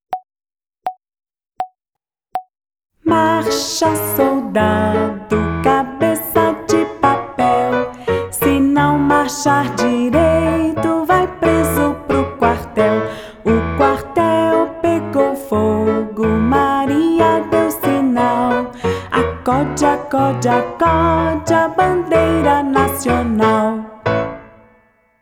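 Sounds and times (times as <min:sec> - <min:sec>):
vocals: 0:03.0 - 0:24.6.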